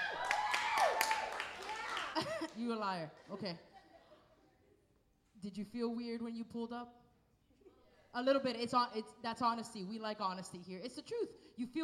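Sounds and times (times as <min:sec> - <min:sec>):
small audience whooping and cheering: 0:00.0 - 0:02.2
hand claps: 0:00.0 - 0:02.6
laughter: 0:01.6 - 0:04.8
speech: 0:02.6 - 0:03.7, 0:05.4 - 0:07.0, 0:08.1 - 0:11.8.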